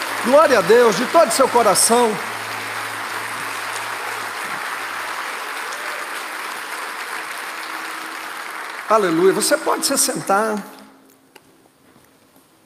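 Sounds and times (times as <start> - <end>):
low hum: 0.0 - 5.8
crowd applauding: 0.0 - 10.9
speech: 0.2 - 2.3, 8.9 - 10.8.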